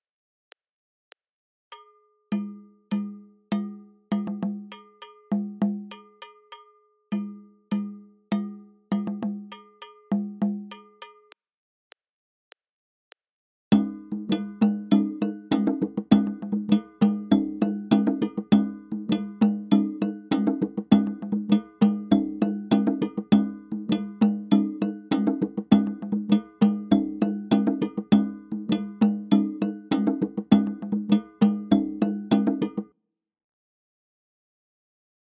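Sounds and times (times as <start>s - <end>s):
African rhythms at 100 bpm: 2.4s - 6.2s, 7.1s - 11.0s, 13.7s - 32.9s.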